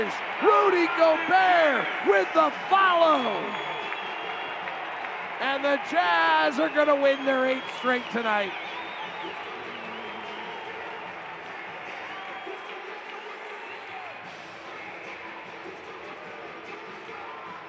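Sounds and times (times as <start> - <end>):
shouts and whistles: 0.0 - 4.8, 5.4 - 11.1, 11.8 - 14.2
big arena crowd cheering: 0.0 - 17.6
speech: 0.1 - 3.7, 5.4 - 8.6.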